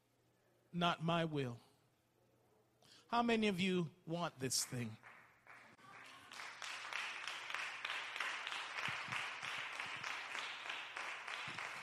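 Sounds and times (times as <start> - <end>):
speech: 0.7 - 1.6, 3.1 - 5.1
audience clapping: 4.5 - 11.8.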